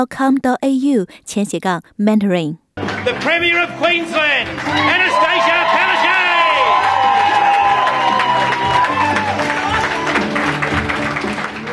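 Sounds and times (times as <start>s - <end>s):
speech: 0.0s - 6.2s
crowd cheering an election victory: 2.9s - 11.7s.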